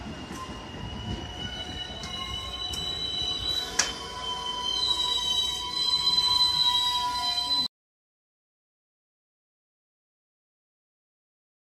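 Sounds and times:
train ambience: 0.0s - 7.7s.

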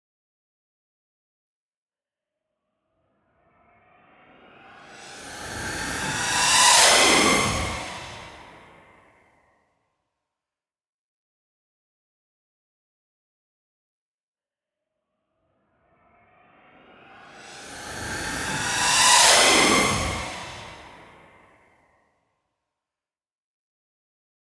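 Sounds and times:
loud jet fly-by: 4.6s - 9.0s, 17.0s - 21.6s.

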